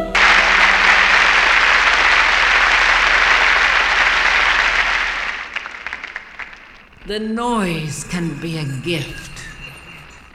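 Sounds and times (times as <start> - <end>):
applause: 0.2 - 7.0
speech: 7.1 - 9.3.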